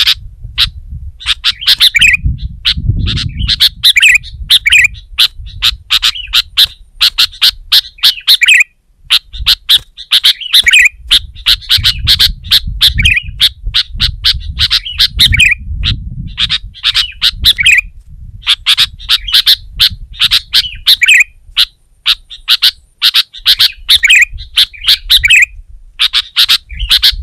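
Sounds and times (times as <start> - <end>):
sooty-headed bulbul singing: 0.0 - 27.2.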